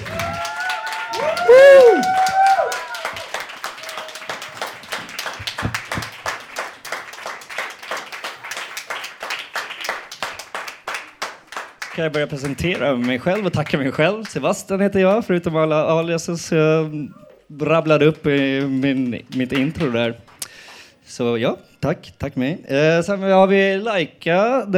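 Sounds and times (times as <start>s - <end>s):
audience applause: 0.0s - 14.0s, 18.1s - 20.9s
speech: 12.0s - 20.3s, 21.1s - 24.7s.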